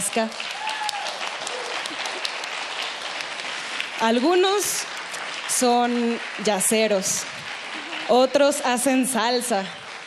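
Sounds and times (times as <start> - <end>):
crowd applauding: 0.0 - 10.0
speech: 0.2 - 0.6, 4.0 - 5.0, 5.6 - 7.4, 8.1 - 9.8.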